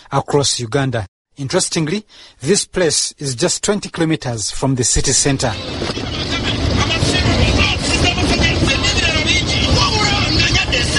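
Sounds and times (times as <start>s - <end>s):
speech: 0.1s - 8.4s
traffic noise from cars and trucks rumbling: 5.1s - 10.9s
crowd of indistinct voices chattering: 5.4s - 10.9s.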